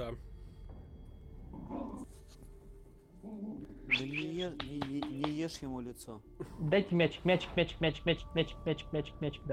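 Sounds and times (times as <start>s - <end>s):
speech: 0.1s - 0.3s, 4.0s - 9.5s
dogs growling: 1.4s - 2.1s.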